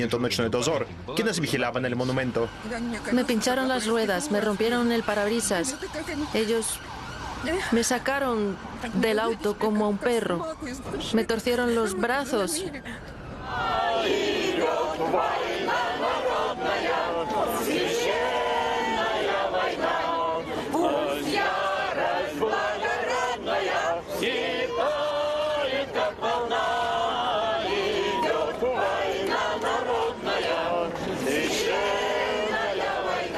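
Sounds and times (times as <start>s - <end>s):
speech: 0.0s - 15.5s
large crowd shouting in the streets: 13.4s - 33.3s.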